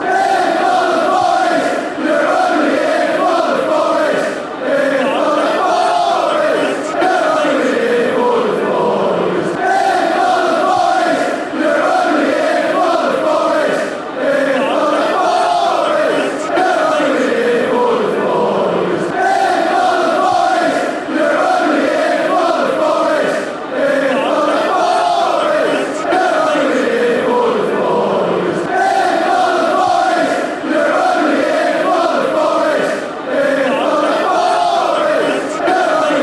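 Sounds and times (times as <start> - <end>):
fans chanting: 0.0 - 36.2.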